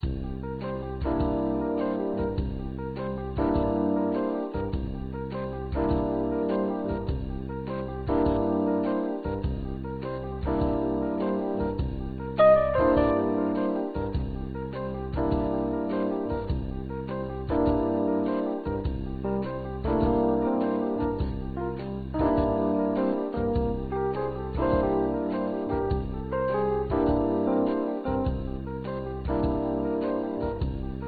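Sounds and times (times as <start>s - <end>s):
jazz music: 0.0s - 31.0s.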